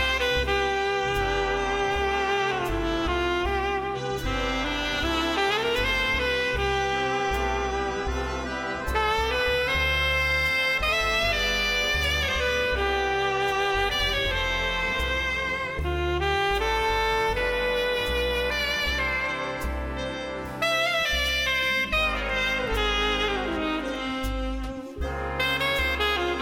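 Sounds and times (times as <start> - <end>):
alto sax solo: 0.0 - 26.4.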